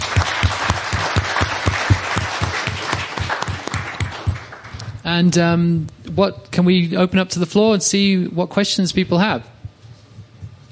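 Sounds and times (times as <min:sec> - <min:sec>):
audience round of applause: 0:00.0 - 0:04.9
speech: 0:05.1 - 0:09.5.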